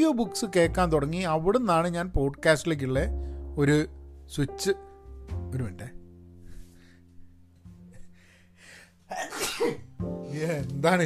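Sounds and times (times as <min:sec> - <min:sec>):
speech: 0:00.0 - 0:04.9, 0:05.5 - 0:06.0, 0:09.1 - 0:11.0
loud sneeze during podcast recording: 0:09.1 - 0:09.9.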